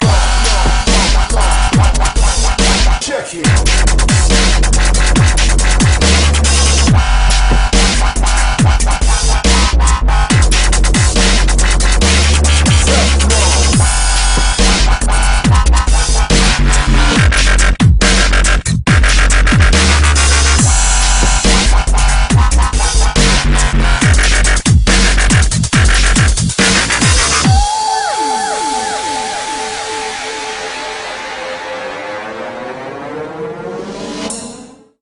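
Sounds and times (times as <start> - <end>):
wub wub bass drop: 0.0 - 32.0.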